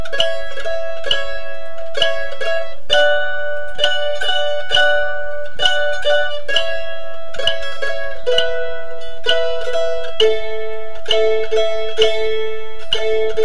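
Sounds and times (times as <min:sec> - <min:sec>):
mandolin playing an exercise: 0:00.0 - 0:13.4.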